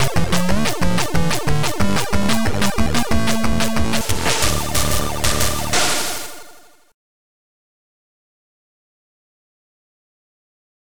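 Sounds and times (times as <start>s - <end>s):
Ukrainian folk punk music: 0.0s - 6.5s.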